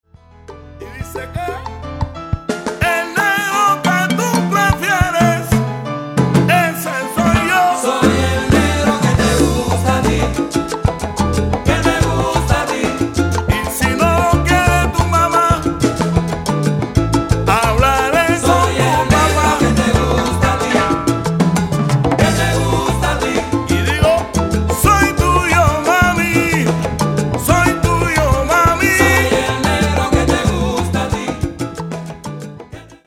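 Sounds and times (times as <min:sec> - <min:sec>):
Cuban salsa band playing a medley of sones: 0:00.4 - 0:33.0.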